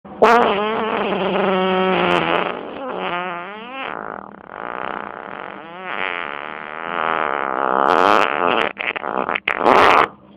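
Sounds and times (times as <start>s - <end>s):
fart: 0.2s - 10.1s.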